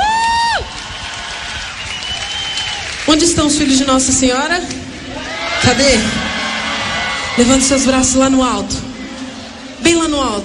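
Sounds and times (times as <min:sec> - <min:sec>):
audience applauding loudly: 0:00.0 - 0:04.1, 0:05.1 - 0:07.4
speech: 0:03.2 - 0:04.9, 0:05.6 - 0:06.3, 0:07.4 - 0:08.9, 0:09.8 - 0:10.4.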